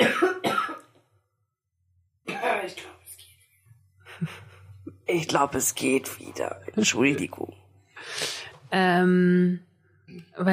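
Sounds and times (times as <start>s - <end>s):
person coughing after choking on tea: 0.0s - 0.9s
speech: 4.2s - 4.4s, 5.1s - 10.5s
breath: 7.9s - 8.6s.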